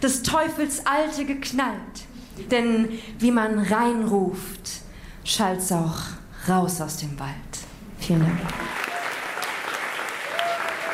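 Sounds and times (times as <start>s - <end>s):
speech: 0.0s - 8.8s
audience applause: 8.3s - 10.9s.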